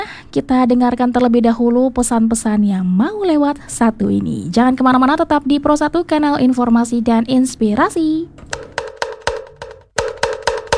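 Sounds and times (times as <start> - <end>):
speech: 0.0 - 8.8
kentongan bamboo slit drum being struck: 8.4 - 10.7.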